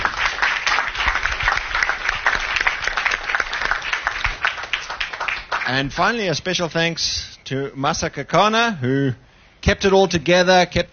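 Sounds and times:
audience applause: 0.0 - 6.2
speech: 5.7 - 10.9.

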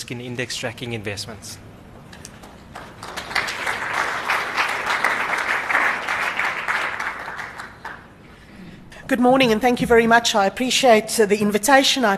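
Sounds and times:
speech: 0.1 - 1.7, 9.1 - 12.1
audience applause welcoming a speaker: 2.4 - 8.2.

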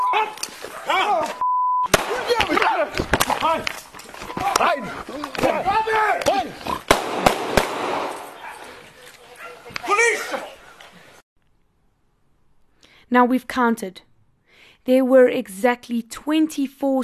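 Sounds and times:
people shouting frantically: 0.0 - 3.7, 4.4 - 6.6, 9.3 - 10.6
speech: 0.2 - 3.8, 4.4 - 7.2, 13.1 - 14.1, 14.8 - 17.0
gunshots: 1.9 - 3.6, 6.9 - 8.4.

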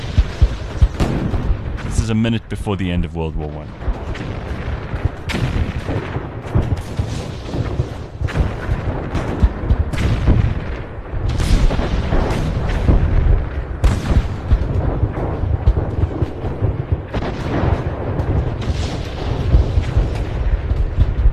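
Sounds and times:
artillery shelling, World War I recording: 0.0 - 21.2
speech: 2.1 - 4.2.

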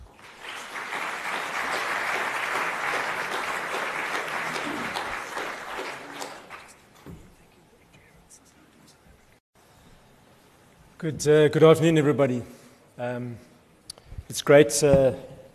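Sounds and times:
audience applause welcoming keynote speakers at a conference session: 0.0 - 6.8
speech: 11.0 - 13.5, 14.3 - 15.3.

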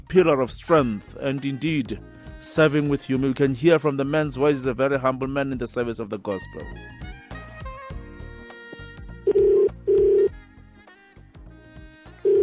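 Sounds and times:
music: 0.0 - 12.4
speech: 0.1 - 7.1
telephone ringback tones on an outgoing call: 9.3 - 10.3, 12.2 - 12.4.

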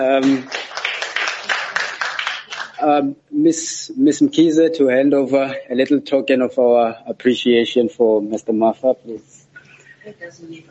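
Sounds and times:
speech: 0.0 - 0.7, 2.8 - 9.4, 10.0 - 10.6
audience applause: 0.1 - 2.8.

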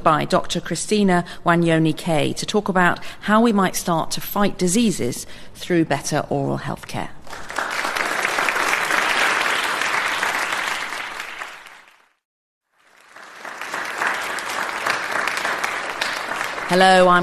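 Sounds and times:
speech: 0.0 - 7.6, 16.7 - 17.2
live audience applauding at Wellcome Collection in London: 7.3 - 17.2.

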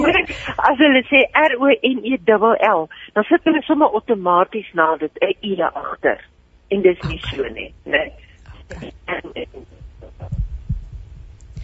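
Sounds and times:
speech: 0.2 - 10.4
phone line breaking up: 5.4 - 10.4.

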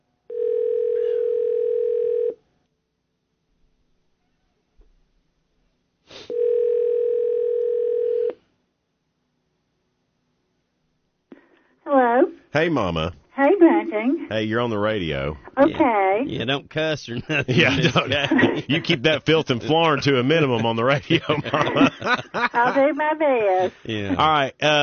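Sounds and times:
buzzy phone line tone as an outgoing call rings through: 0.3 - 2.4, 6.3 - 8.4
speech: 12.6 - 13.2, 13.9 - 24.8
laughter: 17.0 - 24.8.

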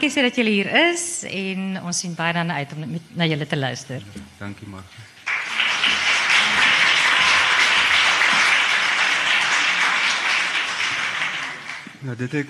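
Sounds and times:
speech: 0.0 - 5.2, 12.0 - 12.4
audience applause: 5.2 - 12.4.

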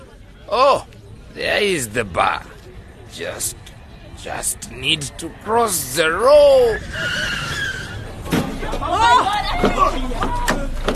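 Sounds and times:
speech: 0.5 - 2.5, 3.1 - 7.5, 8.6 - 10.5
car tires squealing in a skid: 5.8 - 10.9.

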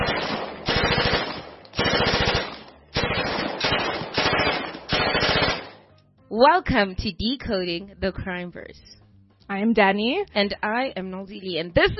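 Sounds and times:
gunshots: 0.0 - 5.9
speech: 6.4 - 11.9.

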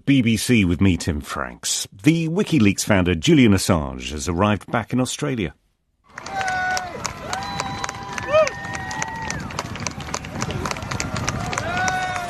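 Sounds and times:
speech: 0.0 - 5.6
crowd of well-wishers cheering at airport: 6.1 - 12.2.

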